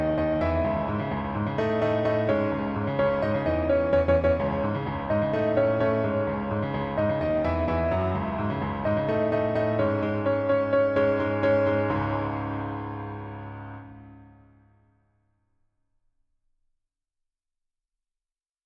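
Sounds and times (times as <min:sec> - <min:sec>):
piano duet: 0:00.0 - 0:14.9.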